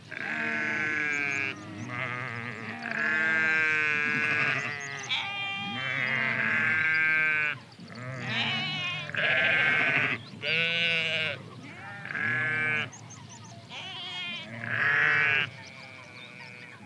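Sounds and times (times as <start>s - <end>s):
sheep bleating: 0.1s - 13.0s, 13.7s - 16.8s.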